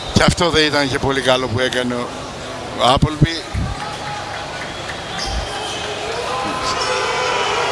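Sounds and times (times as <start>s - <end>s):
speech: 0.2s - 2.2s, 2.8s - 3.7s
basketball arena crowd booing: 3.6s - 7.7s.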